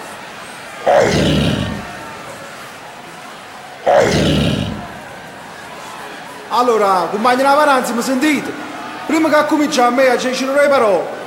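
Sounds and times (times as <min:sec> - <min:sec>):
tiger roar: 0:00.9 - 0:02.1, 0:03.9 - 0:05.1
speech: 0:06.5 - 0:11.2.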